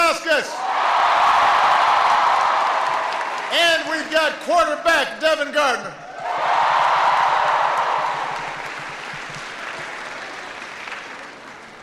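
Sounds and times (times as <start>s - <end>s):
audience round of applause: 0.6s - 4.0s, 6.1s - 11.8s
speech: 4.0s - 6.0s.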